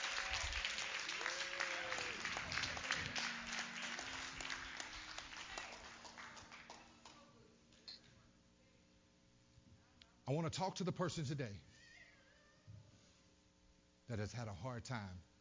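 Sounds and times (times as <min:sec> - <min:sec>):
audience clapping hands: 0:00.0 - 0:07.4
speech: 0:10.3 - 0:11.7, 0:14.1 - 0:15.3.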